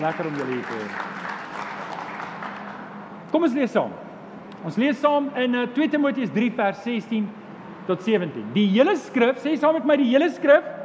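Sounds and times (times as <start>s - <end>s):
speech: 0.0s - 1.3s, 3.3s - 10.8s
audience clapping hands: 0.0s - 3.0s.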